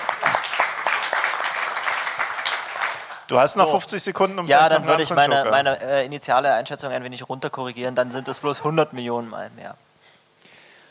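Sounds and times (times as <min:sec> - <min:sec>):
group applause: 0:00.0 - 0:03.3
speech: 0:03.3 - 0:09.9.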